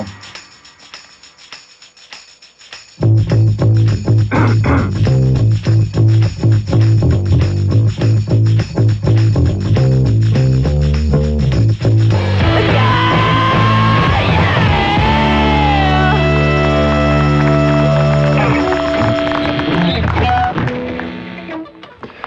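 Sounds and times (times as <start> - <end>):
driving steady drum beat: 0.0 - 21.2
rock song playing on radio: 3.0 - 6.9, 11.8 - 21.5
sustained guitar chords: 3.0 - 10.5, 11.7 - 21.8
chugging bass line: 3.0 - 21.5
shouted soaring vocal: 12.4 - 19.1.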